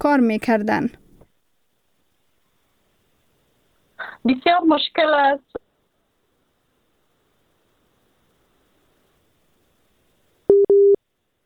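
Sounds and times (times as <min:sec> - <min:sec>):
speech: 0:00.0 - 0:01.0, 0:04.2 - 0:05.6
telephone busy tone after a dropped call: 0:10.5 - 0:11.0.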